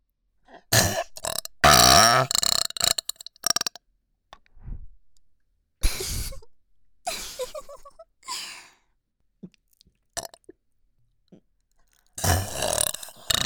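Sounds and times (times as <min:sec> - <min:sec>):
burping compilation: 0:00.7 - 0:03.8, 0:10.2 - 0:10.4, 0:12.2 - 0:13.4.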